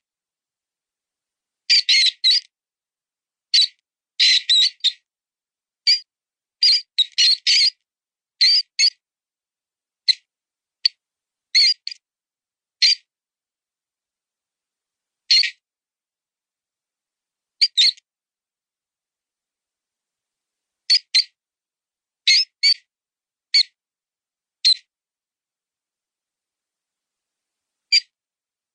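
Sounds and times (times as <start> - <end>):
mouse sound: 1.7 - 2.5, 3.5 - 5.1, 5.8 - 7.8, 8.4 - 9.0, 10.0 - 12.0, 12.8 - 13.1, 15.3 - 15.6, 17.6 - 18.1, 20.9 - 21.4, 22.2 - 22.9, 23.5 - 23.8, 24.6 - 24.9, 27.9 - 28.2.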